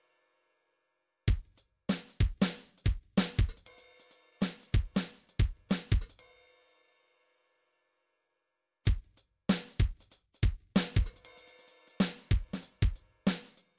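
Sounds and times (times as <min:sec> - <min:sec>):
MIDI drums: 0:01.3 - 0:06.2, 0:08.9 - 0:13.7.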